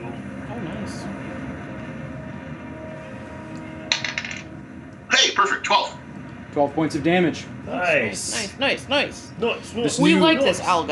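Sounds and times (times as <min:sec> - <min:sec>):
low steady hum: 0:00.0 - 0:10.8
ten-sided die clattering onto a tabletop: 0:03.9 - 0:04.5
speech: 0:05.4 - 0:06.0, 0:06.6 - 0:10.8.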